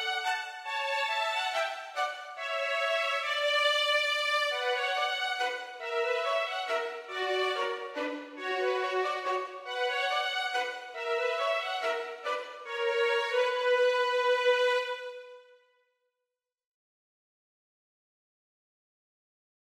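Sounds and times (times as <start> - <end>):
minuet for violin duet: 0.0 - 15.4.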